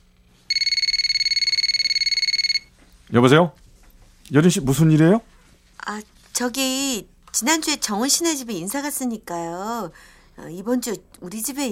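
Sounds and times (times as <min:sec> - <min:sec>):
telephone ringing: 0:00.5 - 0:02.7
speech: 0:03.1 - 0:03.6, 0:04.3 - 0:11.7.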